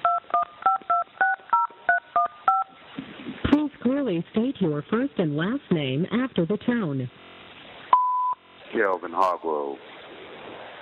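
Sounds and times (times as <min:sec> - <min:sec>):
telephone keypad tones entering a PIN on an automated collect-call line: 0:00.0 - 0:02.7
speech: 0:04.1 - 0:07.2, 0:08.7 - 0:09.9.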